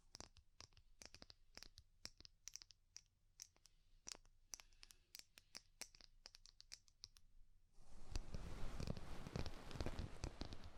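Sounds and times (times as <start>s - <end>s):
ear cleaning scratching and scraping with rhinestone and clay: 7.8s - 10.7s.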